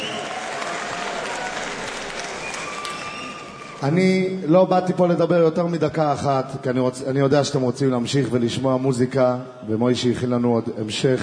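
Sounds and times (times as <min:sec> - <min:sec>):
audience applause: 0:00.0 - 0:04.0
speech: 0:03.8 - 0:11.2.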